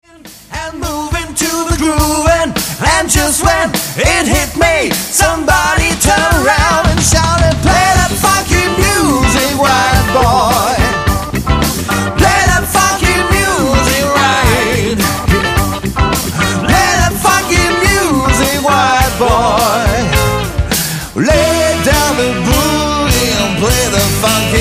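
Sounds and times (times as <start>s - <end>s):
short funky music: 0.0s - 24.6s.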